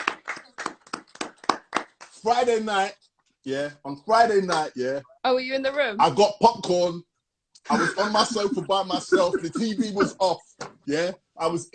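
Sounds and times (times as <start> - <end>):
rhythmic hand clapping: 0.0 - 2.2
speech: 2.2 - 11.7.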